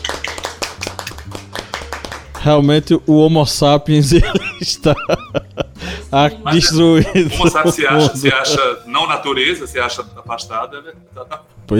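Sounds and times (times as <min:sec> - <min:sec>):
one person applauding: 0:00.0 - 0:02.6
speech: 0:02.4 - 0:11.7
laughter: 0:04.1 - 0:06.0, 0:06.6 - 0:08.8.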